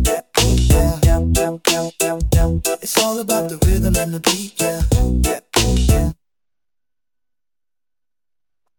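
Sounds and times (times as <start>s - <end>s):
boom bap hip hop beat: 0.0s - 6.2s.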